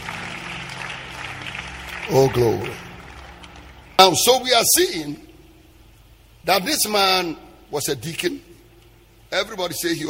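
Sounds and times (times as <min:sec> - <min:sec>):
audience clapping: 0:00.0 - 0:04.6
speech: 0:02.1 - 0:02.9, 0:04.0 - 0:05.3, 0:06.4 - 0:08.5, 0:09.3 - 0:10.0.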